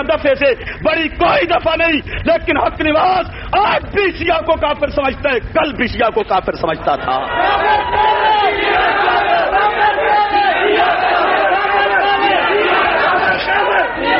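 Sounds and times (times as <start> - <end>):
speech: 0.0 - 8.9
large crowd chanting slogans: 7.3 - 14.1.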